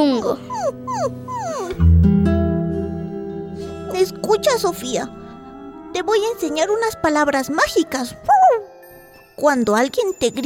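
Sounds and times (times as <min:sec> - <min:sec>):
small dog whimpering: 0:00.0 - 0:01.8, 0:08.3 - 0:08.7
speech: 0:00.0 - 0:02.4, 0:04.0 - 0:05.2, 0:05.9 - 0:08.5, 0:09.4 - 0:10.4.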